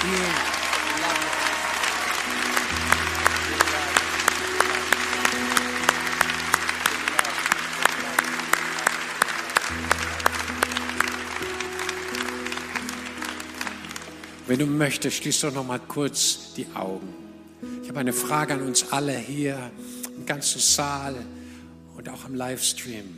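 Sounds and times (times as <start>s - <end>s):
audience applause: 0.0s - 14.8s
low instrumental tones: 0.0s - 21.3s
speech: 14.5s - 17.3s, 17.9s - 23.1s.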